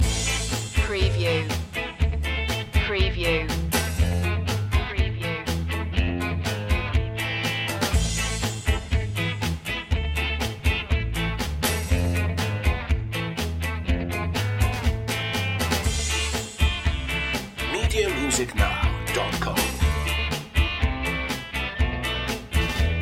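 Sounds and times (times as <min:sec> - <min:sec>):
ska music loop: 0:00.0 - 0:23.0.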